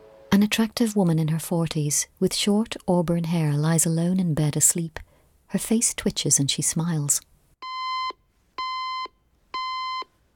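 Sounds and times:
speech: 0.3s - 7.3s
alarm clock beeping beside a bed: 7.6s - 10.1s.

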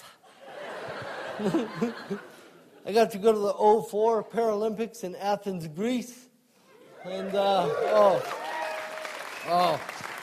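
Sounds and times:
laughter: 0.3s - 2.8s
speech: 1.4s - 6.2s, 7.0s - 8.4s, 9.4s - 10.0s
crowd cheering: 6.8s - 10.2s
crowd clapping during a talk: 7.2s - 10.2s.

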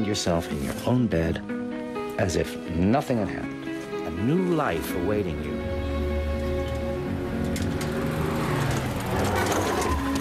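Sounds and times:
speech: 0.0s - 1.6s, 2.2s - 3.6s, 4.2s - 5.6s
truck engine rumbling: 5.8s - 10.1s.

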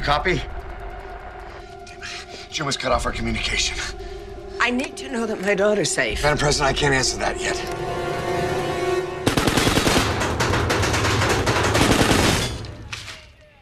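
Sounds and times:
speech: 0.1s - 0.6s, 2.6s - 8.0s
gunfire around wooden outer doors: 9.3s - 13.2s.

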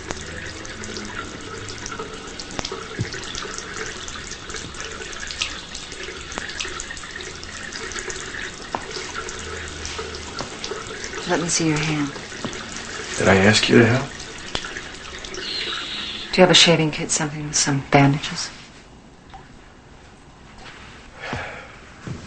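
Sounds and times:
running tap water over an injured hand: 0.0s - 18.5s
speech: 11.3s - 12.2s, 13.2s - 14.1s, 16.4s - 18.6s.

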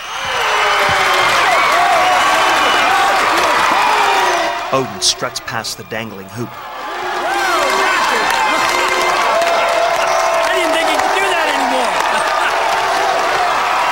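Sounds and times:
clapping: 0.0s - 4.0s, 7.4s - 13.8s
crowd cheering after a backboard-shattering slam dunk at a dunk contest: 0.0s - 13.8s
speech: 4.7s - 6.7s.

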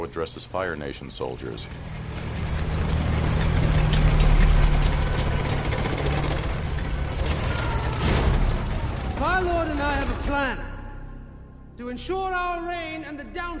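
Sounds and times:
speech: 0.0s - 2.3s, 9.2s - 10.7s, 11.8s - 13.5s
low droning hum: 0.6s - 13.5s
large metal machine rolling toward a temple: 1.2s - 10.6s.

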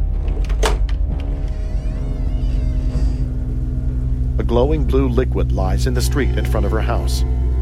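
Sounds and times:
front door opening: 0.2s - 3.7s
speech: 4.5s - 7.4s.

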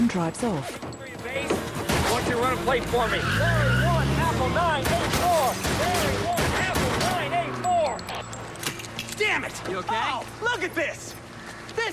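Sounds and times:
speech: 0.1s - 1.5s, 2.2s - 6.3s, 9.2s - 11.2s
people shouting over gunfire: 2.4s - 8.0s
rapid gunfire aimed at a car: 4.8s - 7.3s.

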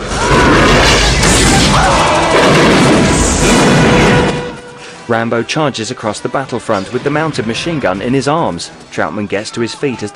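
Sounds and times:
grenade launcher firing and destroying a Russian jeep on a battlefield: 0.0s - 4.8s
speech: 5.1s - 10.1s.

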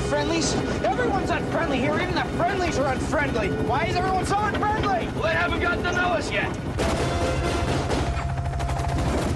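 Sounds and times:
helicopter engine drone: 0.0s - 9.3s
speech: 0.2s - 7.8s
gunfire from hostile forces aimed at a helicopter: 6.8s - 9.3s.

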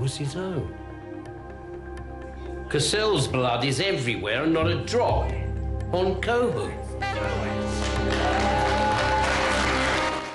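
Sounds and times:
speech: 0.0s - 0.8s, 2.7s - 8.4s
group applauding: 7.1s - 10.3s.

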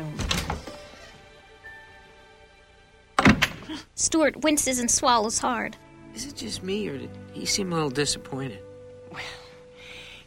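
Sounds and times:
door closing as someone leaves a room: 3.2s - 3.7s
speech: 3.8s - 9.4s.

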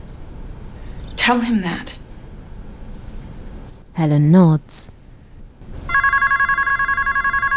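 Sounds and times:
speech: 1.3s - 2.0s, 4.0s - 5.0s
telephone ringing: 5.9s - 7.5s.

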